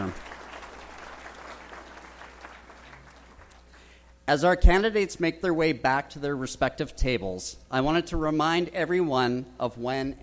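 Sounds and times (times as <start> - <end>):
audience applause: 0.0 - 3.5
speech: 4.3 - 10.2.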